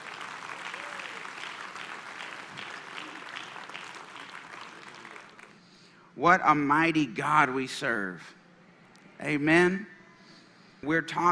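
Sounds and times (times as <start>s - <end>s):
church congregation applauding to welcome a pastor: 0.0s - 5.6s
speech: 6.2s - 8.4s, 9.2s - 9.9s, 10.8s - 11.3s.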